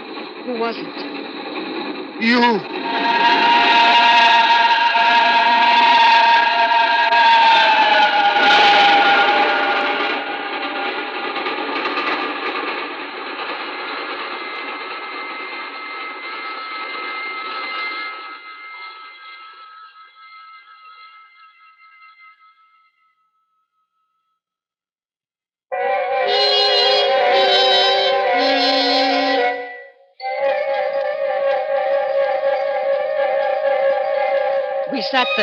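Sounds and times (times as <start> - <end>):
train roaring past on rails: 0.0 - 18.1, 25.7 - 35.4
singing rails: 0.0 - 23.0, 25.7 - 35.4
speech: 0.4 - 1.6, 2.2 - 4.0, 35.1 - 35.4.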